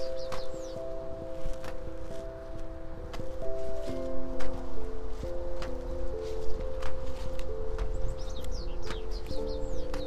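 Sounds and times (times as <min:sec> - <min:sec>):
birds chirping: 0:00.0 - 0:02.0, 0:03.4 - 0:10.0
crackles and rustles of sweet potato seedlings set into mulch film: 0:00.0 - 0:10.0.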